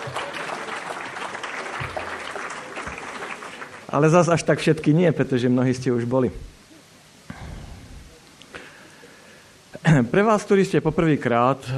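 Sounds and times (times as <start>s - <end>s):
audience applause: 0.0s - 4.0s
speech: 3.9s - 6.5s, 10.1s - 11.7s.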